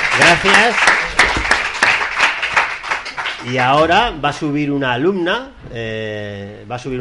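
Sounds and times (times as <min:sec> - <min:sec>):
audience applauding: 0:00.0 - 0:04.5
speech: 0:00.2 - 0:01.0, 0:03.4 - 0:06.9.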